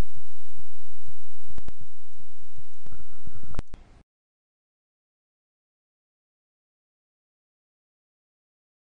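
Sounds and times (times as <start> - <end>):
bass: 0.0 - 4.0.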